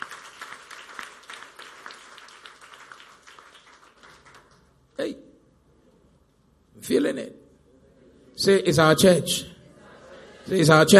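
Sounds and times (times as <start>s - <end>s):
audience applauding: 0.0s - 4.7s
speech: 5.0s - 5.2s, 6.9s - 7.4s, 8.4s - 9.5s, 10.5s - 10.9s.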